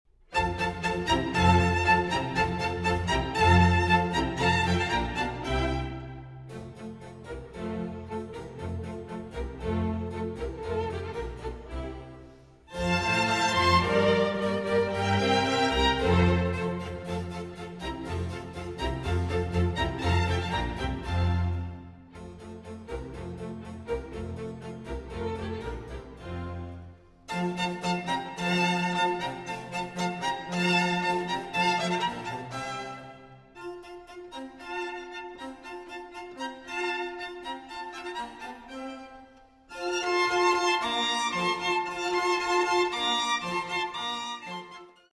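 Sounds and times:
violin concerto in F major: 0.1 - 45.1.

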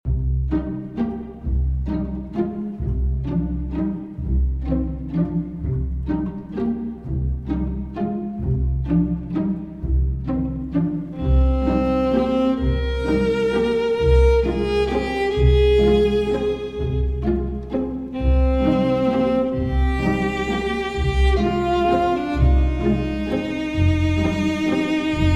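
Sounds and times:
viola plucked pizzicato: 0.1 - 25.3.

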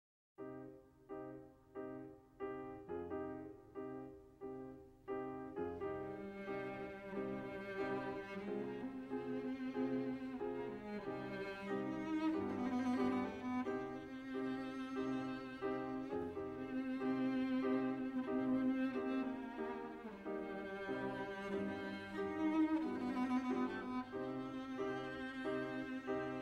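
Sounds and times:
piano trio piece in E flat: 0.4 - 26.3.

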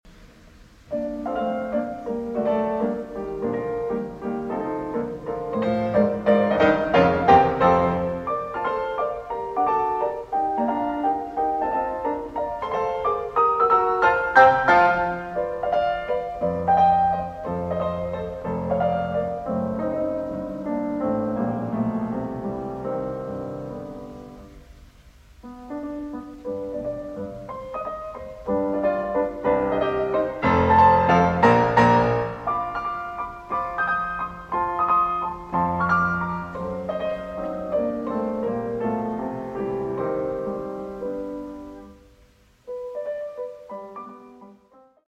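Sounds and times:
piano sonata scherzo in B-flat major assai vivace: 0.3 - 45.0.

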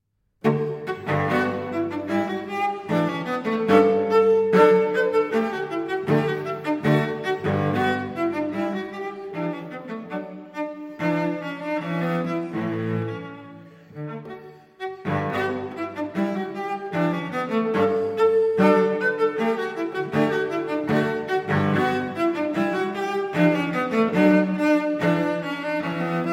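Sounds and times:
solo cello playing a gavotte: 0.4 - 26.3.

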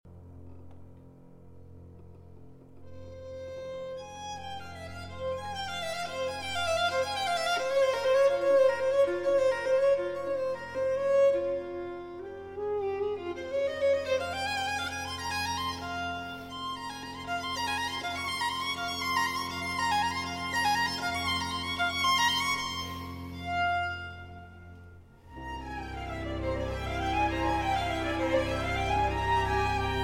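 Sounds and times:
violin concerto in F minor allegro: 2.8 - 30.0.

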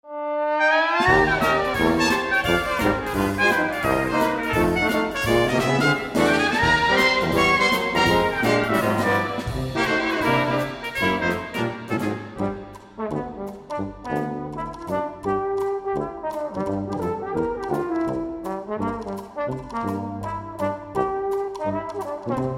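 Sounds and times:
brass quintet playing Dixieland: 0.1 - 22.5.

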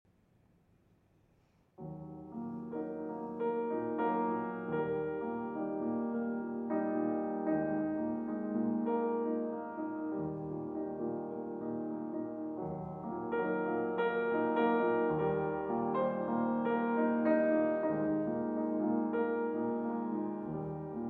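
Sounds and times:
andante piece for violin and piano: 1.8 - 21.0.

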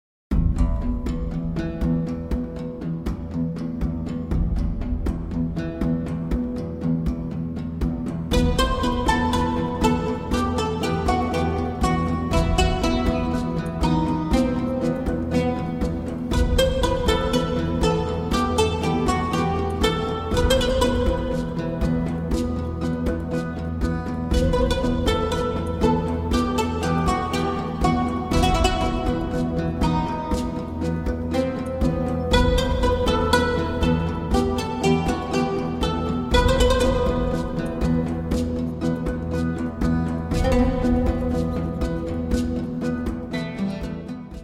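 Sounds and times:
oriental Arabian oud playing: 0.3 - 44.4.

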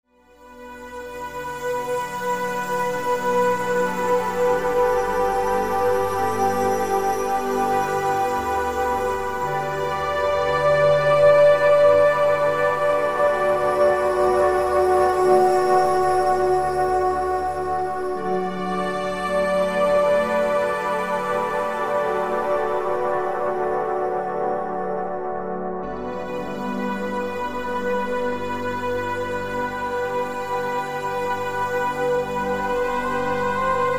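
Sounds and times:
ambient music: 0.2 - 33.9.

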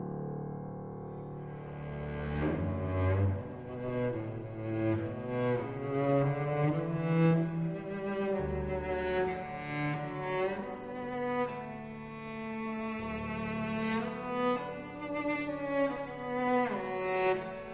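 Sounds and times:
cello sonata: 0.2 - 17.7.

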